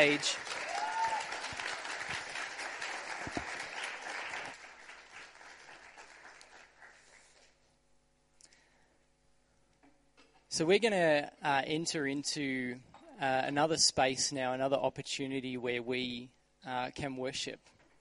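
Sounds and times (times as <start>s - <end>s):
speech: 0.0s - 0.5s, 10.6s - 17.8s
audience applause: 0.0s - 7.3s.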